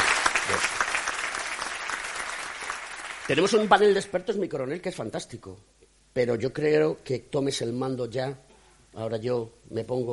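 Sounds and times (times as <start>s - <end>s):
audience applause: 0.0s - 3.7s
speech: 0.5s - 0.9s, 3.3s - 10.1s.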